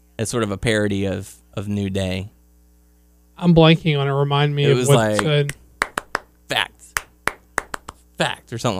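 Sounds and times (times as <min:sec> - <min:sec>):
speech: 0:00.2 - 0:02.4, 0:03.4 - 0:05.6, 0:06.5 - 0:06.7, 0:08.2 - 0:08.7
rhythmic hand claps imitating a wrestling clap: 0:05.0 - 0:08.0.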